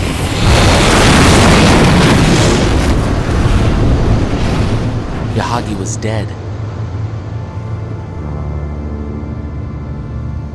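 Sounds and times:
massive ship explosion: 0.0s - 6.3s
speech: 5.6s - 6.4s.

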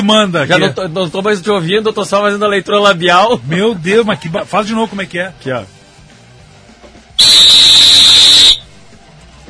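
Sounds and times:
speech: 0.0s - 5.8s, 7.2s - 7.6s
referee's whistle blast: 7.2s - 8.7s.

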